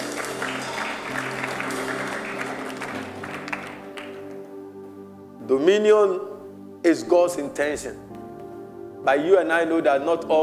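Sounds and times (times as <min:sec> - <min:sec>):
audience clapping: 0:00.0 - 0:04.5
speech: 0:05.5 - 0:08.1, 0:09.0 - 0:10.4.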